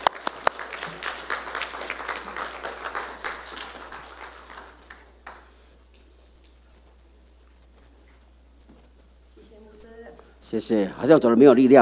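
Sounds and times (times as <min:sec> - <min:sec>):
church congregation applauding to welcome the children's ministry: 0:00.0 - 0:06.1
speech: 0:10.5 - 0:11.8.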